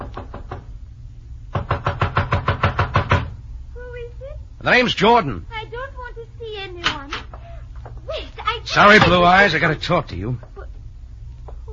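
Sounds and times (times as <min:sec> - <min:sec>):
knocking on a door: 0:00.0 - 0:00.7, 0:01.5 - 0:03.4
speech: 0:04.6 - 0:05.5, 0:08.7 - 0:10.5.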